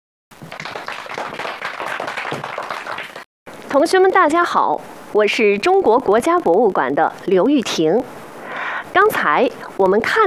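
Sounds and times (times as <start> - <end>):
audience applause: 0.4 - 3.3
speech: 3.7 - 8.2, 9.0 - 10.2.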